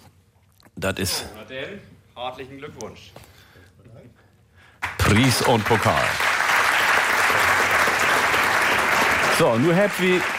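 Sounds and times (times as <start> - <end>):
speech: 0.8 - 3.3, 5.1 - 6.3, 9.4 - 10.3
audience clapping at a prize ceremony: 4.8 - 10.3.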